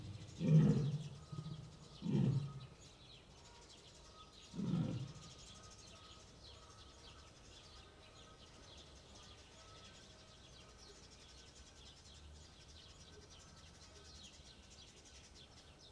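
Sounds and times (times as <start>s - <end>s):
male lion in Debrecen zoo: 0.0s - 2.8s, 4.4s - 5.6s.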